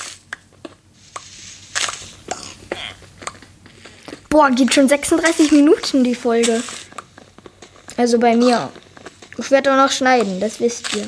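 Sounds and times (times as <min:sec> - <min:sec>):
mining iron ore in the Minecraft One Block game: 0:00.0 - 0:11.0
speech: 0:04.4 - 0:06.8, 0:08.0 - 0:08.8, 0:09.4 - 0:11.0.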